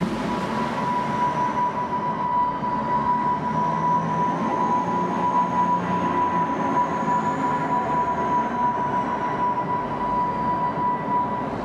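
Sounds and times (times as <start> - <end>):
ambience: 0.0 - 11.6.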